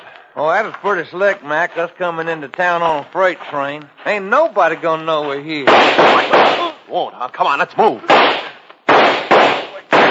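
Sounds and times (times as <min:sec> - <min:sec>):
speech: 0:00.4 - 0:08.4
gunshots: 0:05.6 - 0:06.8, 0:08.0 - 0:10.0.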